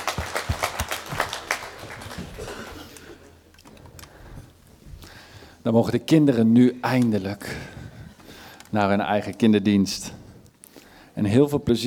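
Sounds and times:
applause: 0.0 - 2.8
speech: 5.6 - 7.7, 8.7 - 10.2, 11.2 - 11.8.

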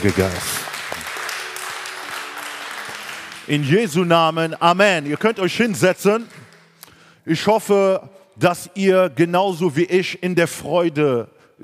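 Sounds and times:
speech: 0.0 - 0.6, 3.5 - 6.4, 7.2 - 11.6
audience applause: 0.0 - 6.8.

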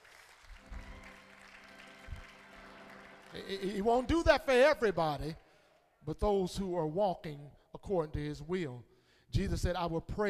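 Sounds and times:
audience clapping: 0.0 - 5.9
speech: 3.3 - 5.4, 6.0 - 10.2.

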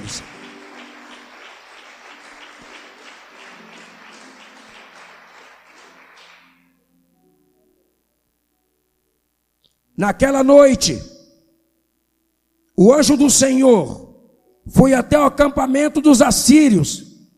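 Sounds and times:
audience applauding: 0.0 - 6.8
speech: 0.1 - 0.3, 10.0 - 11.1, 12.8 - 14.0, 14.7 - 17.1.

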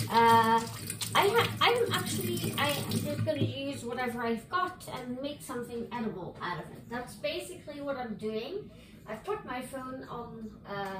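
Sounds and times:
washing hands: 0.0 - 3.4
speech: 4.0 - 10.9.

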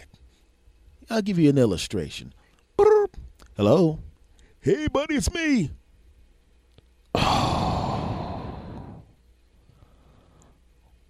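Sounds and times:
speech: 1.1 - 5.8
person imitating heavy breathing down a phone line: 7.2 - 9.1.

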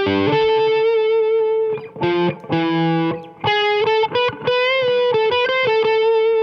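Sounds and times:
distorted electric guitar lead line over an E7 chord landing on G sharp: 0.0 - 6.4.

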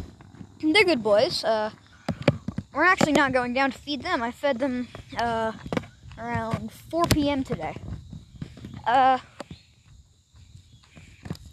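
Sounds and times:
footsteps walking down: 0.0 - 0.6, 1.7 - 11.5
speech: 0.6 - 1.8, 2.8 - 7.9, 8.8 - 9.3.

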